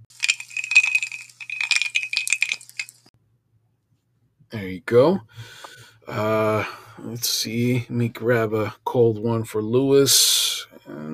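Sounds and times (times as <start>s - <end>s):
ice cubes clattering into a glass: 0.1s - 3.1s
speech: 4.5s - 11.1s.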